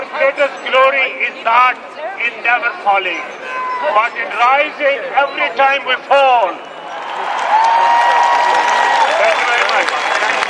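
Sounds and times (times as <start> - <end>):
speech: 0.2 - 7.9
crowd applause at rally: 6.9 - 10.4.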